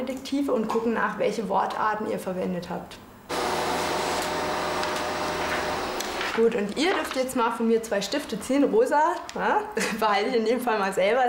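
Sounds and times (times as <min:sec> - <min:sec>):
speech: 0:00.1 - 0:03.1, 0:06.4 - 0:11.2
printer printing out a document during a school lesson: 0:03.3 - 0:06.5.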